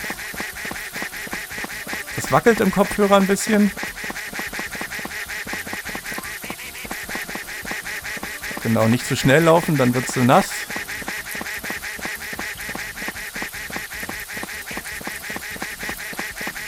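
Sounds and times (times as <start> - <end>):
duck quacking: 0.0 - 16.6
speech: 2.2 - 3.9, 8.7 - 10.5.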